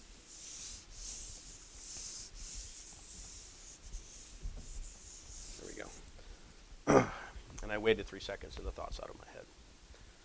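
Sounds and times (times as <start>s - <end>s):
writing being erased from a board: 0.0s - 6.1s
speech: 7.8s - 9.6s.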